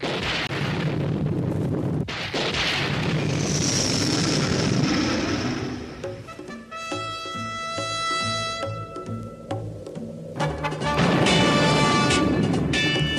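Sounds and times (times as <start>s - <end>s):
thunder at start of theme song: 0.0s - 7.1s, 8.3s - 13.1s
bright tonal theme music with steady drum hits: 5.6s - 13.1s.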